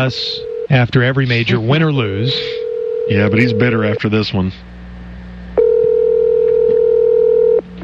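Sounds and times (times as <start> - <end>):
speech: 0.0 - 4.7
telephone dial tone: 2.6 - 3.8, 5.6 - 7.6
telephone keypad tones as a number is dialed: 5.6 - 7.6.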